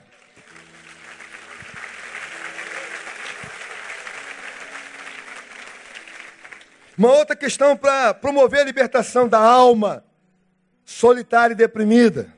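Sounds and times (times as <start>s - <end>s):
strong sustained audience applause: 0.0s - 7.0s
speech: 7.0s - 10.1s, 10.9s - 12.3s.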